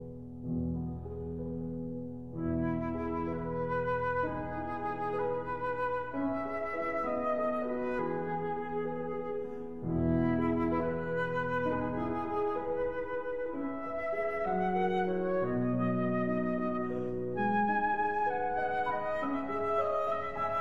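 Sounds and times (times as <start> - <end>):
flute and piano lullaby: 0.0 - 20.5.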